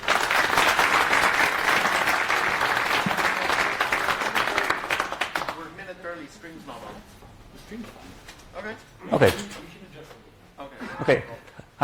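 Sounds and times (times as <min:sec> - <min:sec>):
audience applauding to welcome a speaker on Horizon EDA: 0:00.0 - 0:05.7
speech: 0:09.2 - 0:09.4, 0:11.1 - 0:11.8
laughter: 0:10.7 - 0:11.8.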